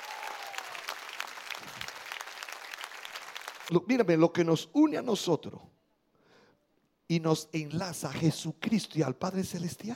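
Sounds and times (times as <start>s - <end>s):
loud applause: 0.0s - 3.7s
speech: 3.7s - 5.8s, 7.1s - 9.9s.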